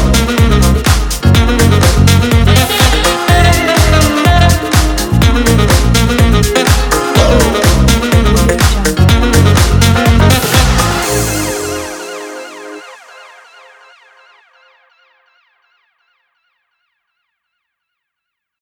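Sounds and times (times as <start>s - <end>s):
lounge house fashion music: 0.0s - 14.1s.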